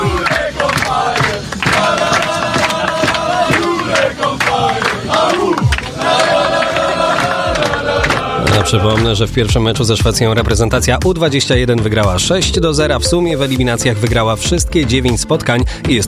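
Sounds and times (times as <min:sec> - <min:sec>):
hands clapping: 0:00.0 - 0:09.2
football players cheering, celebrating a win: 0:00.0 - 0:09.9
speech: 0:08.7 - 0:16.0.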